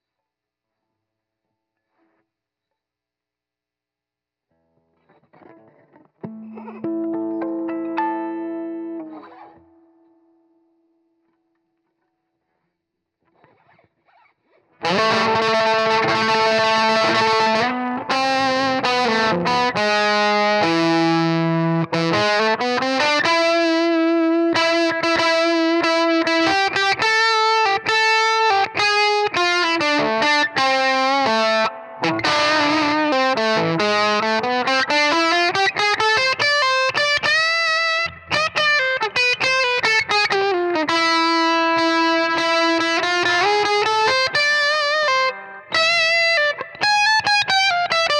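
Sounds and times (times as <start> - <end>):
guitar solo: 5.1 - 10.2, 14.8 - 48.1.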